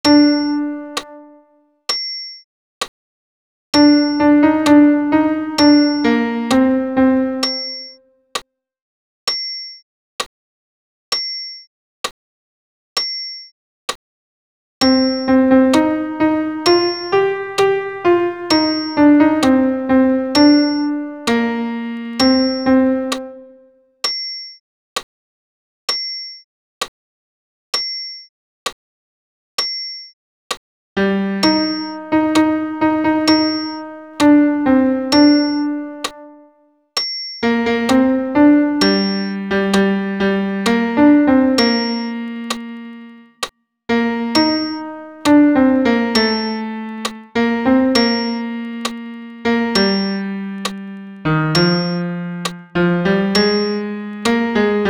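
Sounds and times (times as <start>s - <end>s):
solo piano: 0.0s - 1.5s, 3.8s - 8.0s, 14.8s - 23.7s, 31.0s - 36.5s, 37.4s - 43.3s, 43.9s - 54.8s.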